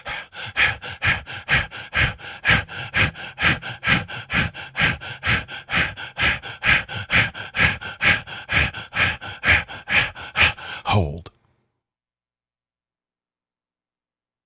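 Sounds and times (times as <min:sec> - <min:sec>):
breathing in and out during a breathing exercise: 0:00.0 - 0:11.3.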